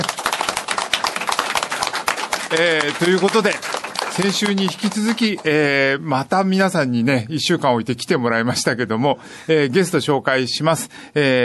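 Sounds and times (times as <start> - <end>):
applause: 0.0 - 5.6
speech: 2.5 - 11.4.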